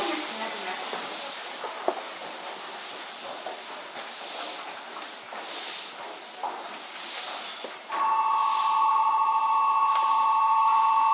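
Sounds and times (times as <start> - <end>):
Toei 5300 series train running between Oshiage and Gotanda: 0.0 - 11.1
steady high tone: 7.9 - 11.1.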